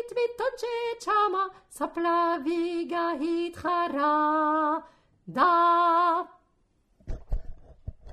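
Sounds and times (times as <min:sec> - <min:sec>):
soprano singing: 0:00.0 - 0:06.4.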